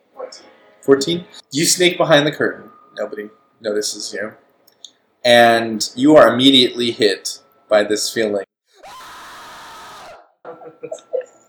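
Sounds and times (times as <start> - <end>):
speech: 0.3 - 4.4, 5.2 - 8.5
voice imitating a terrible shriek: 8.8 - 10.3.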